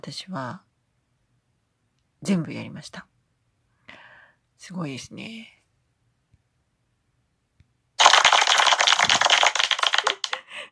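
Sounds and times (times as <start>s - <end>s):
speech: 0.0s - 0.7s, 2.2s - 3.1s, 4.6s - 5.6s
applause sound effect: 8.0s - 10.6s.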